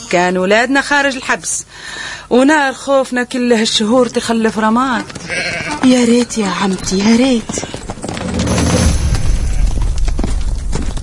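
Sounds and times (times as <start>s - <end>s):
speech: 0.1s - 7.9s
horse hooves clattering coming to a halt: 3.3s - 11.0s.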